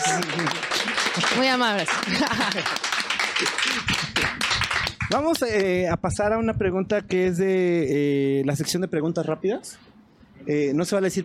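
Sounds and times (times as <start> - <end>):
laughter: 0.0 - 4.2
applause: 0.0 - 5.7
speech: 1.4 - 4.2, 5.1 - 11.2.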